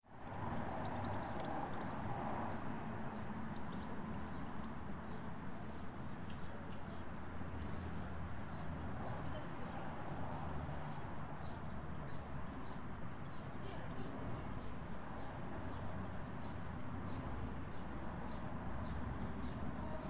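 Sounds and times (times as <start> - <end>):
traffic heard from a Luton garden: 0.0 - 20.0
birds in a Luton garden: 0.1 - 20.0.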